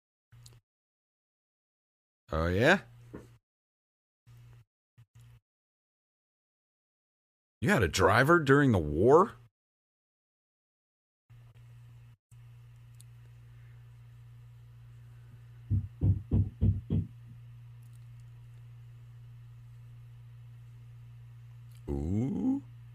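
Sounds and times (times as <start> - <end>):
speech: 2.3 - 3.2, 7.6 - 9.4
fist banging on a door: 15.7 - 17.1.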